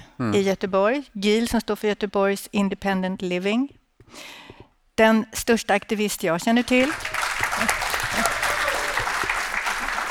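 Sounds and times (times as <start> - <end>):
speech: 0.2 - 7.8
audience applause: 6.8 - 10.0.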